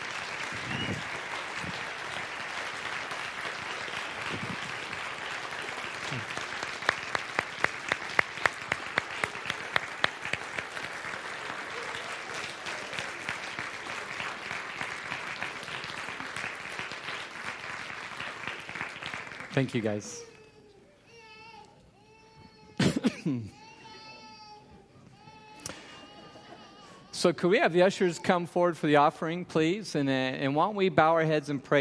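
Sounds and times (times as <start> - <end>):
audience applause: 0.0 - 20.2
speech: 19.6 - 20.3, 27.2 - 31.7.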